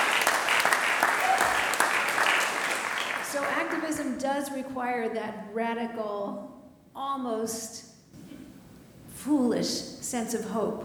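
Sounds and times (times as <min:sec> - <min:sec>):
audience applause: 0:00.0 - 0:03.9
speech: 0:03.8 - 0:07.9, 0:09.2 - 0:10.8.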